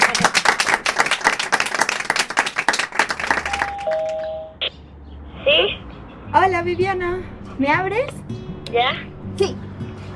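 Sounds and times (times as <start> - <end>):
studio audience applause: 0.0 - 4.2
speech: 6.5 - 9.6.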